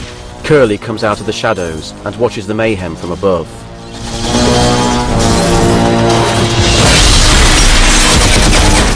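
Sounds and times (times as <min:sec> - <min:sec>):
speech: 0:00.5 - 0:04.2
crashing impacts on barrels of beer: 0:04.0 - 0:08.9
soldiers' machine gun fire in a bar: 0:06.7 - 0:08.9.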